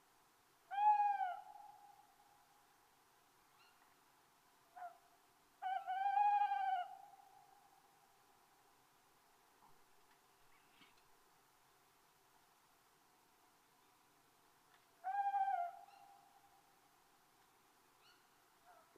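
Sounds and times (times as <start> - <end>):
tawny owl calling: 0.7 - 2.1, 3.5 - 3.9, 4.7 - 7.9, 15.0 - 16.6, 18.0 - 18.9.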